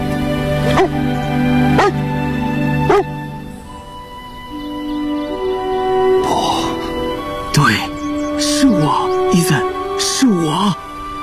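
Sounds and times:
sustained humming musical backdrop: 0:00.0 - 0:11.2
dog barking: 0:00.8 - 0:01.0, 0:01.8 - 0:02.0, 0:02.9 - 0:03.1.

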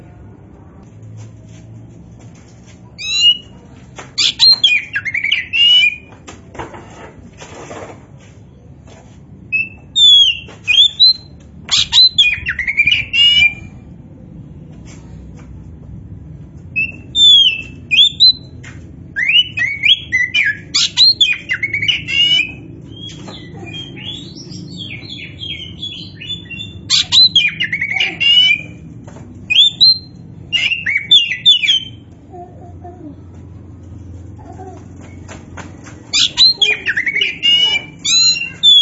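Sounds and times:
Oriental magpie-robin song: 0:03.0 - 0:03.6, 0:04.2 - 0:06.1, 0:09.6 - 0:13.7, 0:16.8 - 0:18.6, 0:19.2 - 0:28.8, 0:29.5 - 0:32.1, 0:36.1 - 0:38.7.

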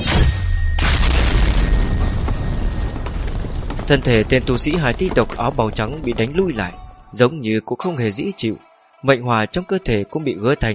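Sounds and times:
loud explosion boom: 0:00.0 - 0:07.1
speech: 0:03.9 - 0:10.7.

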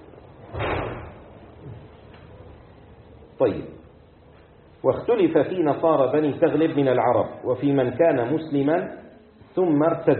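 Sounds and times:
low hum: 0:00.0 - 0:10.1
door slamming shut: 0:00.4 - 0:01.8
speech: 0:03.4 - 0:03.8, 0:04.8 - 0:09.0, 0:09.6 - 0:10.1.

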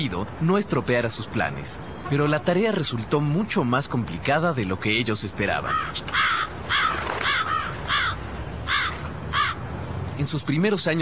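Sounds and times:
speech: 0:00.0 - 0:06.5, 0:10.2 - 0:10.9
large birds cawing: 0:05.6 - 0:10.0.

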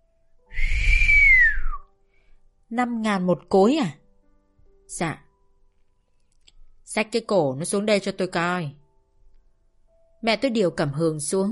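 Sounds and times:
man whistling once: 0:00.5 - 0:01.9
speech: 0:02.7 - 0:04.0, 0:04.9 - 0:05.2, 0:06.9 - 0:08.8, 0:10.2 - 0:11.5.

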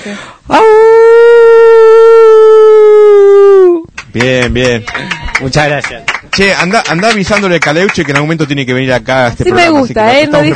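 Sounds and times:
speech: 0:00.0 - 0:00.8, 0:04.1 - 0:10.5
person imitating a howl: 0:00.5 - 0:03.9.

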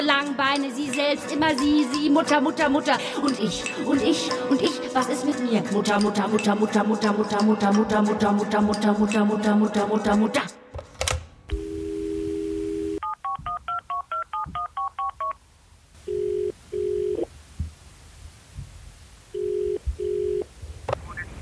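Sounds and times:
speech: 0:00.0 - 0:10.6
steady telephone dial tone: 0:11.5 - 0:15.4, 0:16.0 - 0:17.3, 0:19.4 - 0:20.5
telephone keypad dialing beeps: 0:13.0 - 0:15.4.

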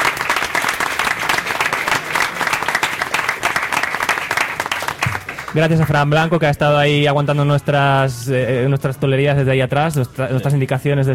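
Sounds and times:
audience applause: 0:00.0 - 0:06.0
speech: 0:05.5 - 0:11.1.

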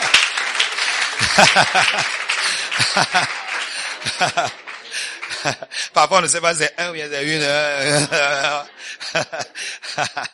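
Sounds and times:
congregation clapping at a church service: 0:00.0 - 0:08.8
congregation chuckling at a church service: 0:00.8 - 0:06.0, 0:07.4 - 0:10.3
speech: 0:01.4 - 0:02.2, 0:02.9 - 0:03.4, 0:04.0 - 0:04.6, 0:05.4 - 0:10.3.

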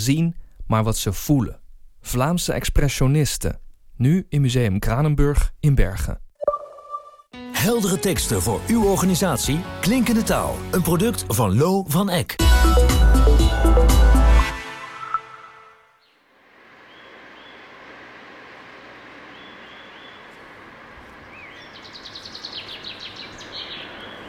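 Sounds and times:
speech: 0:00.0 - 0:06.2, 0:07.6 - 0:13.9
loud burst of music: 0:07.4 - 0:11.2, 0:12.4 - 0:15.8
quiet outdoor hiss: 0:16.0 - 0:24.2
chaffinch singing: 0:16.8 - 0:17.8, 0:19.2 - 0:24.2.

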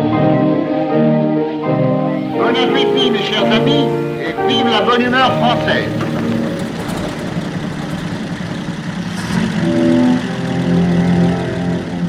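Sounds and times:
Citroën half-track car engines starting off on a 1931 Central Asia expedition: 0:00.0 - 0:12.0
speech: 0:02.5 - 0:06.1.

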